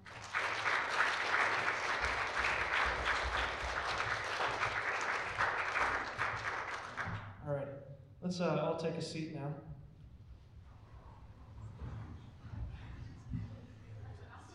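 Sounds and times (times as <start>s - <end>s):
audience applause: 0.0s - 7.3s
speech: 8.3s - 9.8s.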